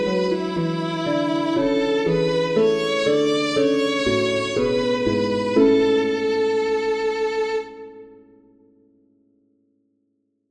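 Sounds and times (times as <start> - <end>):
violin backing track: 0.0 - 8.3.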